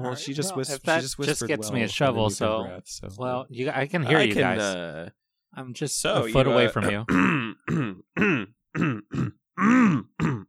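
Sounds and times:
speech: 0.0 - 10.4
coughing: 6.8 - 10.4.

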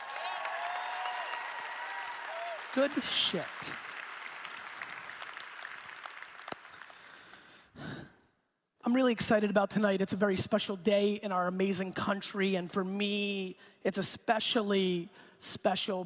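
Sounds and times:
audience cheers at the INBOUND 2016 keynote: 0.0 - 6.2
audience applause at the INBOUND 2016 keynote: 0.0 - 7.6
speech: 2.8 - 3.9, 8.9 - 16.0.

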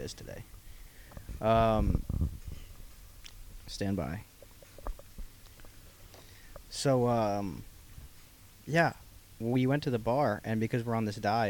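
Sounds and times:
speech: 0.0 - 0.6, 1.4 - 2.4, 3.7 - 4.3, 6.7 - 7.7, 8.7 - 11.4
microphone taken off stand, rustling: 0.0 - 9.2.

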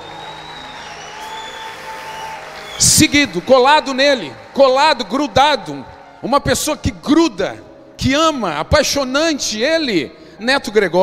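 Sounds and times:
audience applause: 0.0 - 6.2
speech: 2.8 - 11.0.

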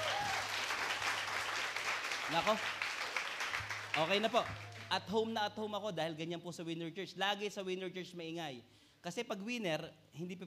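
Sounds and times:
audience clapping: 0.0 - 5.3
speech: 2.3 - 2.8, 4.0 - 10.4.

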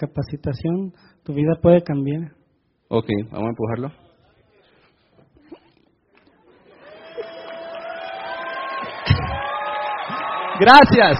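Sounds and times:
speech: 0.0 - 4.0, 10.6 - 11.1
audience applause: 6.6 - 11.1
cheers and whoops: 6.7 - 11.1.

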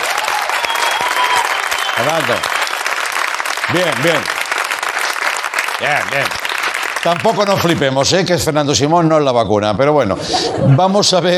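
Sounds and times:
crowd applause: 0.0 - 8.2
speech: 2.0 - 2.6, 3.7 - 4.4, 5.8 - 6.4, 7.0 - 11.3.

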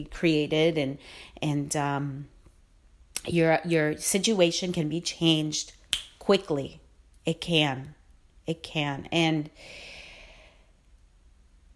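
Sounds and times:
speech: 0.0 - 2.3, 3.2 - 10.0
deep breath: 9.6 - 10.8.

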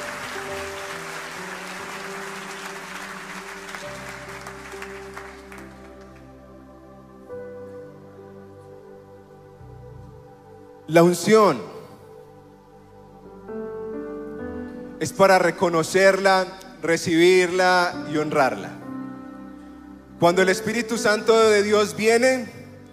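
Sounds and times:
audience applause: 0.0 - 6.4
sustained organ or keyboard chords: 0.0 - 22.9
speech: 10.9 - 11.7, 15.0 - 18.8, 20.2 - 22.6.

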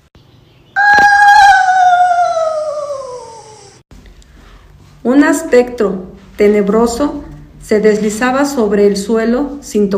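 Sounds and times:
eerie howling scream: 0.8 - 3.8
speech: 5.0 - 9.9.

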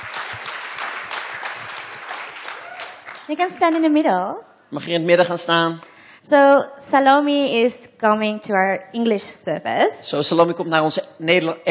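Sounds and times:
audience applause: 0.0 - 4.0
speech: 3.3 - 11.7.

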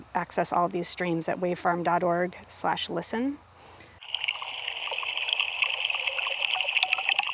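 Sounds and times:
live pond ambience: 0.0 - 7.3
speech: 0.2 - 3.5
water trickling: 4.0 - 7.3.

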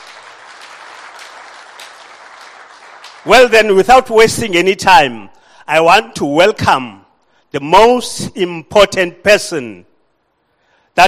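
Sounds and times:
audience applause: 0.0 - 3.4
speech: 3.2 - 9.9.

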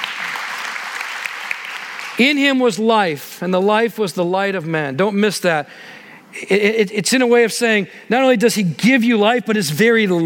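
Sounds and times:
audience clapping: 0.0 - 2.2
speech: 2.2 - 10.2.

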